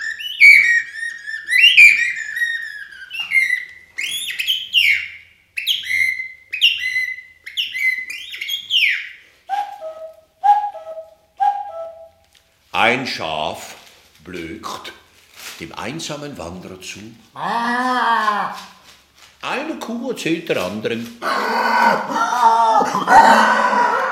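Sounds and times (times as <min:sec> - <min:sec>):
birds singing at dawn: 0:00.0 - 0:10.1
speech: 0:12.8 - 0:15.0, 0:15.6 - 0:18.8, 0:19.4 - 0:23.8
laughter: 0:22.1 - 0:24.1.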